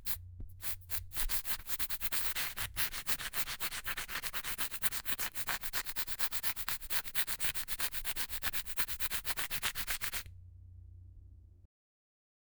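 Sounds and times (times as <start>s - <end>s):
sticky ear cleaning ASMR: 0.0s - 10.3s.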